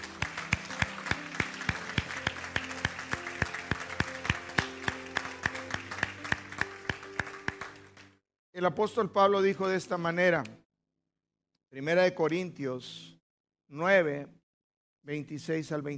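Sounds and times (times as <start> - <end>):
audience applause: 0.0 - 8.1
speech: 8.6 - 10.6, 11.7 - 13.1, 13.7 - 14.4, 15.0 - 15.9.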